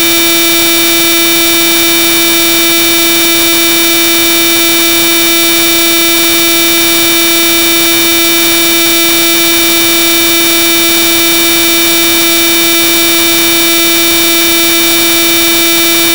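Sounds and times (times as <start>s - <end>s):
1kHz 0dBFS tuning test tone: 0.0s - 16.1s.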